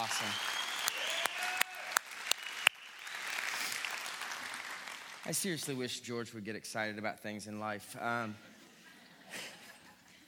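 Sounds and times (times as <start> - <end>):
audience applause: 0.0 - 5.4
speech: 0.1 - 0.5, 5.3 - 8.5.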